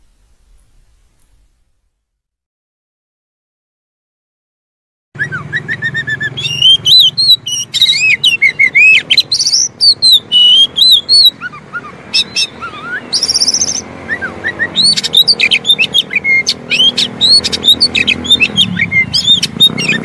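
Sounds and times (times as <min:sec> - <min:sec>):
Oriental magpie-robin song: 0:05.2 - 0:20.0.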